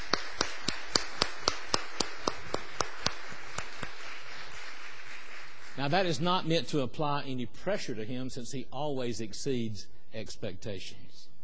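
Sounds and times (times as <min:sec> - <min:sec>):
audience applause: 0:00.0 - 0:06.2
speech: 0:05.8 - 0:11.3.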